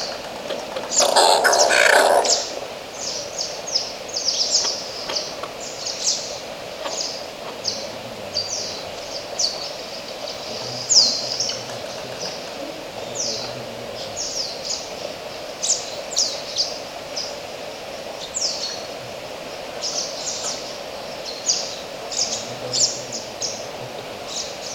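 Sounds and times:
hiss: 0.0s - 24.7s
oilbird rasping scream: 0.9s - 3.2s.

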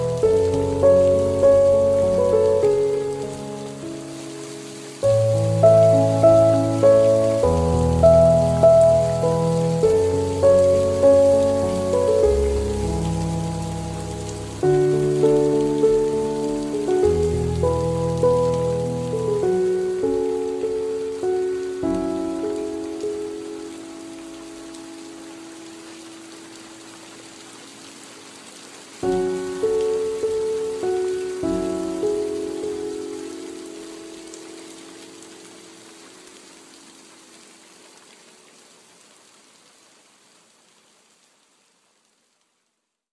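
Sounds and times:
piano: 0.0s - 38.0s
rain: 0.0s - 43.0s.

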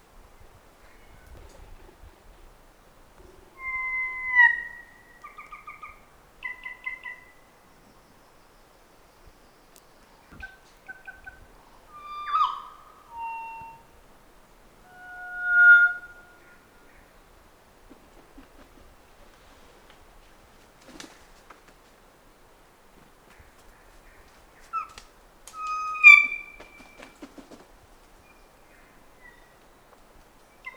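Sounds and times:
kōkako song: 3.2s - 17.3s, 25.6s - 27.4s, 28.2s - 29.8s, 30.4s - 30.7s.

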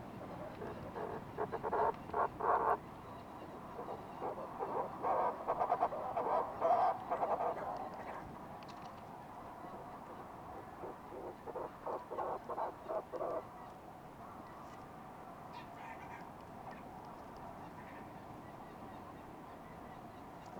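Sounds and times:
fulmar prion croaking calls: 0.5s - 2.8s, 3.5s - 8.3s, 9.7s - 13.5s.

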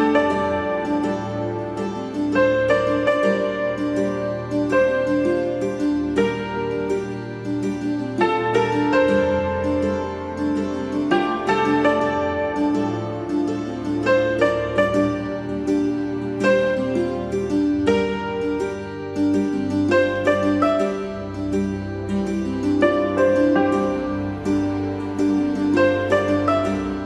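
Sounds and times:
hammered dulcimer: 0.0s - 27.0s.

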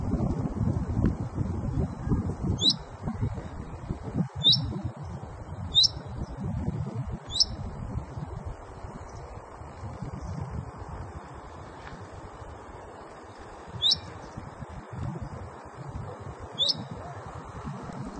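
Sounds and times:
steady low background rumble: 0.0s - 18.1s
common chaffinch calling with high-pitched notes: 2.6s - 2.8s, 4.4s - 4.7s, 5.7s - 6.0s, 7.3s - 7.6s, 13.8s - 14.1s, 16.6s - 17.1s.

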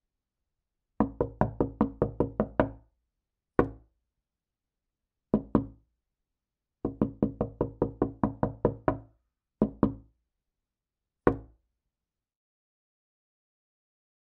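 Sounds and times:
knocking on window: 1.0s - 2.8s, 3.6s - 3.8s, 5.4s - 5.8s, 6.8s - 9.0s, 9.6s - 10.0s, 11.3s - 11.5s.

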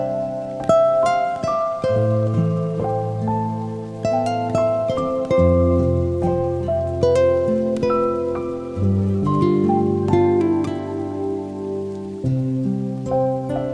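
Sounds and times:
guitar playing: 0.0s - 13.7s
rain: 0.0s - 13.7s.

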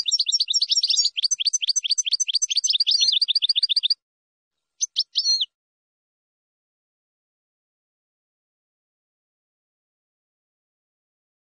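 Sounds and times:
finch singing: 0.0s - 4.0s, 4.8s - 5.5s.

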